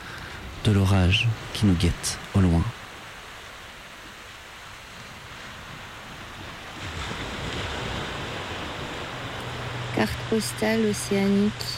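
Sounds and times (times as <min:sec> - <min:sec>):
wind: 0:00.0 - 0:11.7
speech: 0:00.6 - 0:02.8, 0:10.0 - 0:11.7
waves washing onto a pebble shore: 0:02.9 - 0:11.7.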